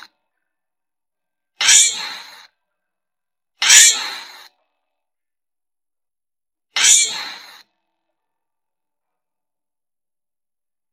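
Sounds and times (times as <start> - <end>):
giant flying squirrel screeches: 1.6 - 2.5, 3.6 - 4.5, 6.8 - 7.7.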